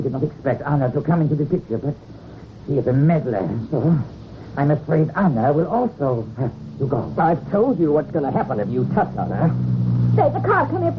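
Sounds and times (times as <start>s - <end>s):
speech: 0.0s - 10.9s
car engine humming driving up a hill: 2.9s - 10.9s
indistinct voices murmuring: 3.4s - 9.6s.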